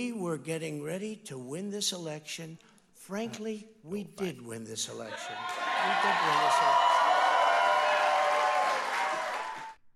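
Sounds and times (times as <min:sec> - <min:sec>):
speech: 0:00.0 - 0:06.8
room audience applause at a political speech: 0:05.3 - 0:09.8.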